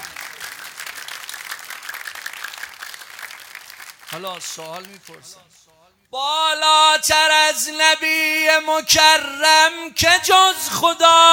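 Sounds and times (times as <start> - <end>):
audience clapping at a religious gathering: 0.0 - 5.8
speech: 4.1 - 11.3.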